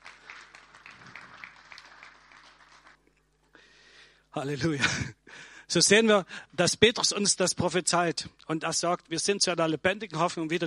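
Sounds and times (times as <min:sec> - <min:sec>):
audience applause: 0:00.0 - 0:03.0
speech: 0:04.4 - 0:10.6.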